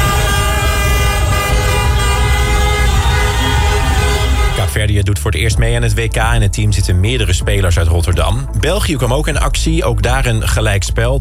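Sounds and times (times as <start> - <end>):
car horns honking in street celebration: 0.0 - 4.8
traffic rumble: 0.0 - 10.2
speech: 5.0 - 11.1.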